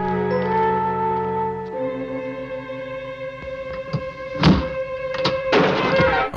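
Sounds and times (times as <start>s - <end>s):
music: 0.0s - 6.3s
hidden switch on the hand of a suit of armour mechanical thunks: 3.5s - 6.3s.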